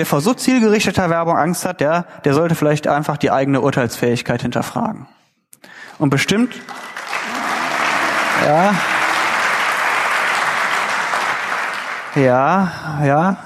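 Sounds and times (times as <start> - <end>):
speech: 0.0 - 5.2, 6.0 - 6.9, 8.4 - 8.9, 12.2 - 13.4
audience applause during a talk: 6.0 - 12.7.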